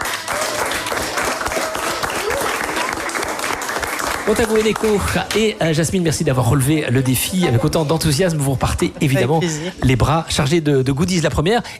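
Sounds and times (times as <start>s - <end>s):
studio audience applause: 0.0s - 6.8s
speech: 4.3s - 11.7s.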